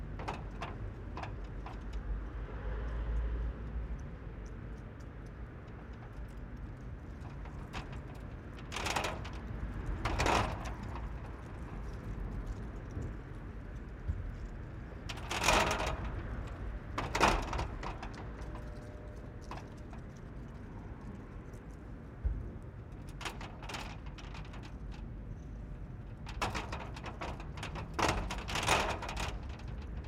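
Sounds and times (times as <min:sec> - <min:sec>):
gate moving in wind: 0:00.0 - 0:02.2, 0:07.2 - 0:13.2, 0:14.5 - 0:20.0, 0:22.6 - 0:30.0
wind in a town parking space: 0:00.0 - 0:30.0.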